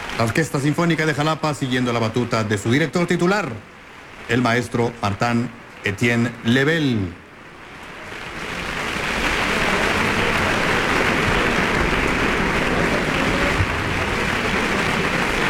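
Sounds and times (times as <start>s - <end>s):
audience applause in the concert hall of Centro Cultural Tlacna: 0.0s - 2.1s, 7.8s - 15.4s
speech: 0.2s - 3.7s, 4.3s - 7.2s.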